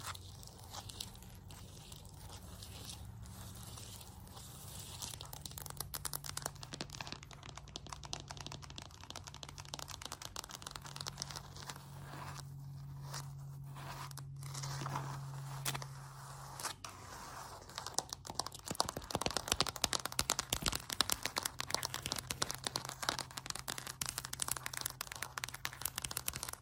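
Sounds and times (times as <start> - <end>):
floor tapping and scratching: 0.0 - 26.6.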